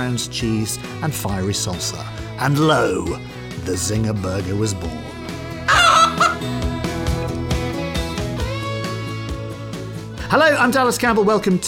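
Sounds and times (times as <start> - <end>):
speech: 0.0 - 5.1, 10.3 - 11.6
steady musical backing: 0.0 - 11.6
chicken clucking: 5.7 - 6.4.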